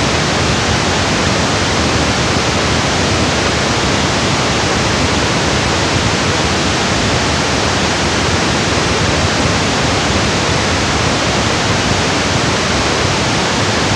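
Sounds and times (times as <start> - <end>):
band-limited pink noise: 0.0 - 13.9.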